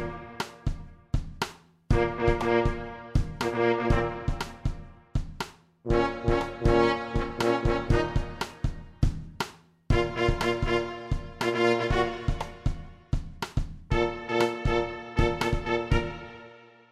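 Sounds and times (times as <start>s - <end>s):
trombone: 0.0s - 0.7s, 1.9s - 5.0s, 5.9s - 8.9s, 9.9s - 12.9s, 13.9s - 16.6s
tuba: 0.0s - 0.8s, 1.9s - 5.0s, 5.9s - 9.1s, 9.9s - 13.0s, 13.9s - 16.6s
trumpet: 0.0s - 1.0s, 1.9s - 5.2s, 5.9s - 9.2s, 9.9s - 13.2s, 13.9s - 16.8s
drum kit: 0.0s - 16.5s.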